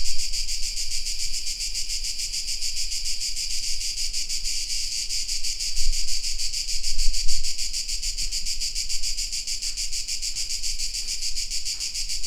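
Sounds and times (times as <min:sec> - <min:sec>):
crickets chirping: 0:00.0 - 0:12.2.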